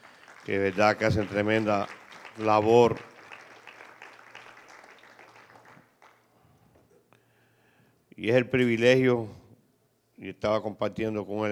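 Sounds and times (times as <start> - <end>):
audience applause for musicians: 0.0 - 6.2
speech: 0.5 - 3.1, 8.2 - 9.4, 10.2 - 11.5.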